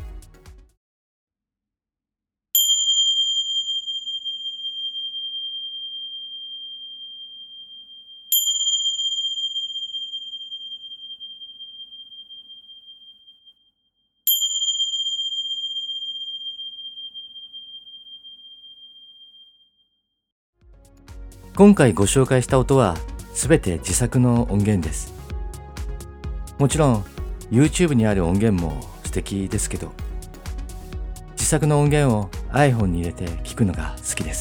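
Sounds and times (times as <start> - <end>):
tingsha cymbals chiming: 2.6 - 13.2, 14.3 - 18.9
speech: 21.6 - 25.2, 26.6 - 30.0, 31.5 - 34.4.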